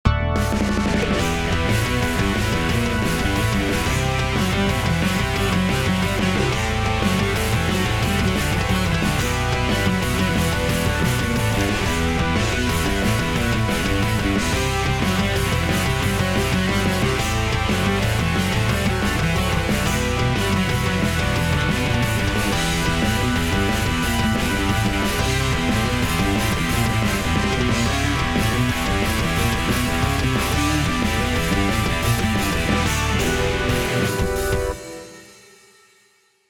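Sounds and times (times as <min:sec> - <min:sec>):
musical riff: 0:00.1 - 0:35.6.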